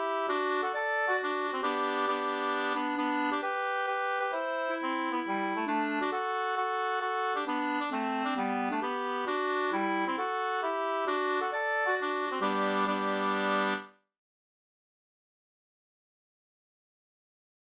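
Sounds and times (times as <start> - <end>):
hambo polska folk dance tune: 0.0 - 13.9.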